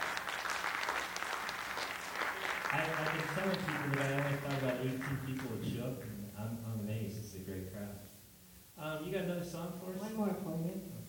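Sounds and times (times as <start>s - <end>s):
audience applause: 0.0s - 5.6s
speech: 2.7s - 8.1s, 8.8s - 11.0s.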